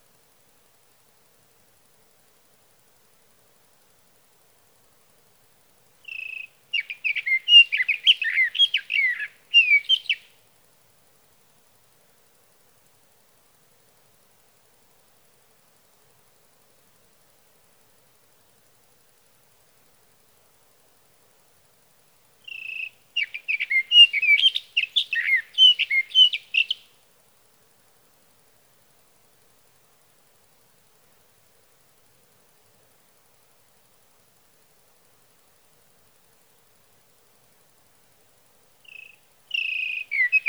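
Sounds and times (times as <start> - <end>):
sage thrasher: 6.1 - 10.3, 22.4 - 26.9, 38.9 - 40.4.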